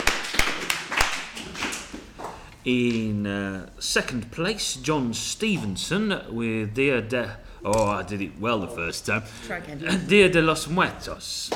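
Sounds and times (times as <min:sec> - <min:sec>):
round of applause: 0:00.0 - 0:01.8
speech: 0:02.6 - 0:11.5.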